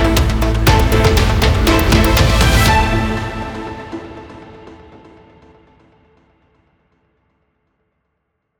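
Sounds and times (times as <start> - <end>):
breaking news intro music: 0.0 - 5.8.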